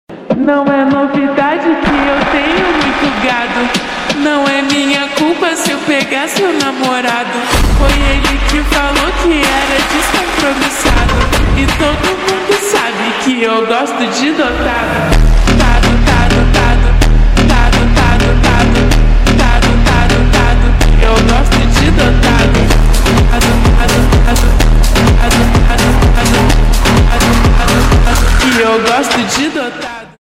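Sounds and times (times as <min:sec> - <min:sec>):
Brazilian phonk song: 0:00.1 - 0:30.2.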